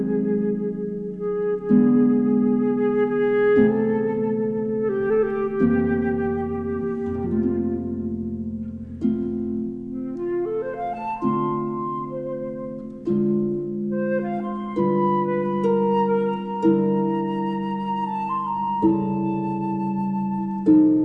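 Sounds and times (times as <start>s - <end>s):
flute: 0.0s - 21.0s
harp: 0.0s - 21.0s.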